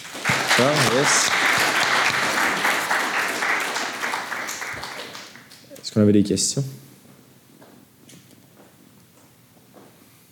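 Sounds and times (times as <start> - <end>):
audience applause: 0.0 - 5.8
speech: 0.6 - 1.6, 6.0 - 6.8.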